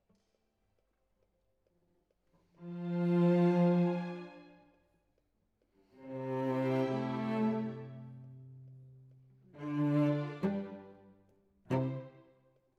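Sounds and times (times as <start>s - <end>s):
cello solo: 2.6s - 4.6s, 5.9s - 12.4s.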